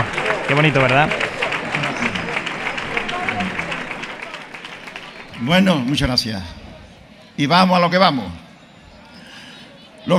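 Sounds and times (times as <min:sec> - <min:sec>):
crowd clapping: 0:00.0 - 0:06.1
murmur of voices: 0:00.0 - 0:10.1
speech: 0:00.5 - 0:01.2, 0:05.4 - 0:06.6, 0:07.4 - 0:08.4.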